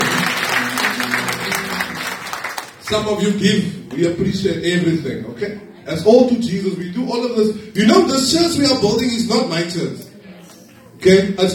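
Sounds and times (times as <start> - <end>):
hand clapping: 0.0 - 2.8
speech: 2.9 - 10.0, 11.0 - 11.5.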